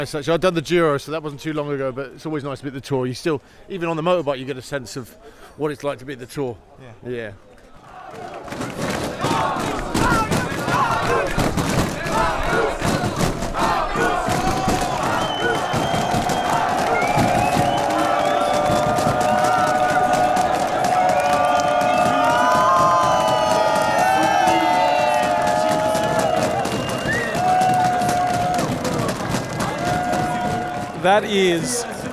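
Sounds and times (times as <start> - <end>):
speech: 0.0 - 7.5, 8.1 - 8.8, 31.0 - 31.9
roadside crowd cheering a cyclist: 7.7 - 32.1
roadside crowd voices chanting: 9.0 - 26.9.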